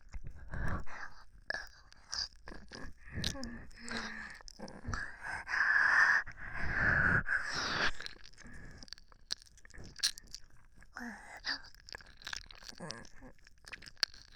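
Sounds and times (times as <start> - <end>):
ear licking: 0.1 - 5.5, 7.4 - 14.3
slurping: 1.5 - 5.2, 7.0 - 14.3.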